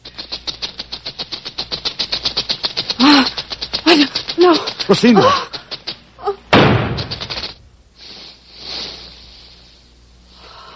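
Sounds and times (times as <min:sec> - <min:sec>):
speech: 0:04.5 - 0:05.5
loud gunshot: 0:06.5 - 0:07.2.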